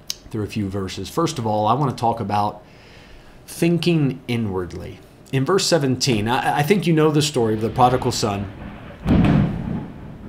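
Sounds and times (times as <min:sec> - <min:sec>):
speech: 0:00.3 - 0:02.8, 0:03.5 - 0:09.2
thunder clap: 0:06.1 - 0:10.2.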